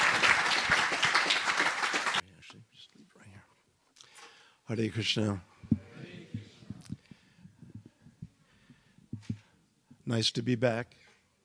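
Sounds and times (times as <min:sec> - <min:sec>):
audience applause welcoming a speaker at an ISKCON of DC gathering: 0:00.0 - 0:02.2
speech: 0:04.7 - 0:05.5, 0:10.1 - 0:11.1.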